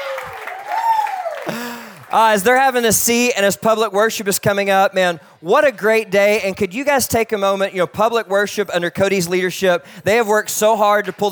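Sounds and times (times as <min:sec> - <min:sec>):
person whooping: 0:00.0 - 0:02.1
scattered cheers: 0:00.0 - 0:02.2
crowd clapping: 0:00.0 - 0:02.5, 0:10.7 - 0:11.3
speech: 0:01.5 - 0:11.3.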